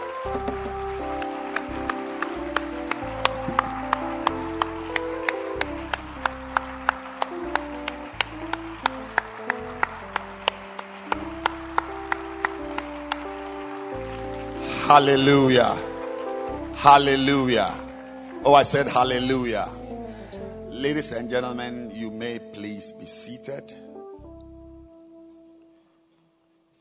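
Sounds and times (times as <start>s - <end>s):
audience clapping in unison: 0.0s - 21.7s
moving bass line: 0.0s - 21.9s
sustained keyboard chords: 0.0s - 26.1s
speech: 14.9s - 15.9s, 16.8s - 17.8s, 18.4s - 19.8s, 20.8s - 21.8s, 22.8s - 23.9s.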